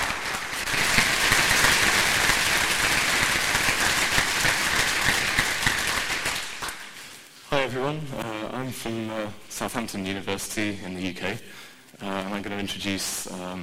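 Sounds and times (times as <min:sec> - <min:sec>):
crowd applauding: 0:00.0 - 0:07.0
speech: 0:07.7 - 0:13.6.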